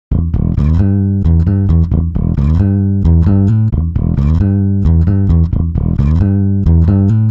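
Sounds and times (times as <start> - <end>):
bass: 0.0 - 7.2.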